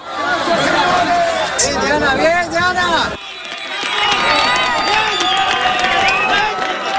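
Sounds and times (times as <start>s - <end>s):
crowd cheering at a rescue: 0.0s - 6.9s.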